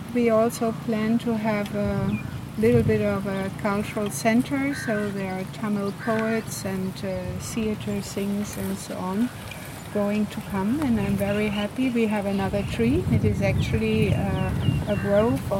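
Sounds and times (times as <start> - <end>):
tree planting memorial soundscape: 0.0 - 15.5.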